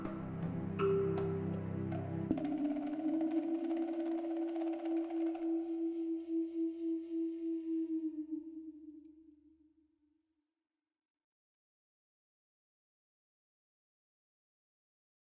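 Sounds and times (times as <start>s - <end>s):
ambient music: 0.0s - 9.6s.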